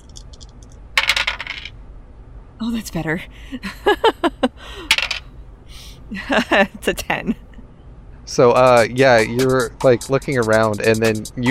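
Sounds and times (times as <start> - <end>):
dice being rolled on a table: 0.0 - 1.7, 4.9 - 5.2
speech: 2.6 - 5.0, 6.1 - 7.4, 8.3 - 11.4
laughter: 3.4 - 4.9, 6.1 - 7.4.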